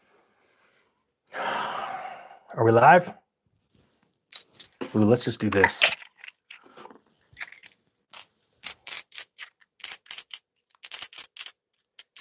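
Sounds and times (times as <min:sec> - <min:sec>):
speech: 0:02.6 - 0:03.2, 0:04.9 - 0:06.0
pieces of silver clinking as they are dropped onto one another: 0:04.3 - 0:04.8, 0:07.4 - 0:12.1.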